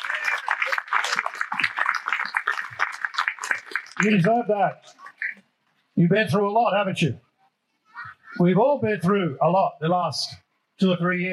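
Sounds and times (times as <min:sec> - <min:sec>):
audience round of applause: 0:00.0 - 0:05.4
speech: 0:04.0 - 0:04.9, 0:06.0 - 0:07.2, 0:08.4 - 0:11.3.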